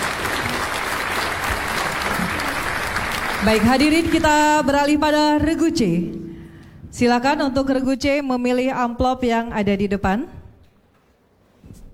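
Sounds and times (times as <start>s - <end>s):
audience applause: 0.0s - 4.3s
speech: 3.4s - 6.2s, 6.9s - 10.4s.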